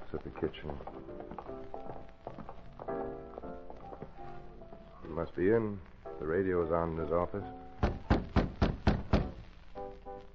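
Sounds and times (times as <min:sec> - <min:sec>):
speech: 0:00.1 - 0:01.2, 0:05.1 - 0:07.6
knock on an office door: 0:07.8 - 0:09.4.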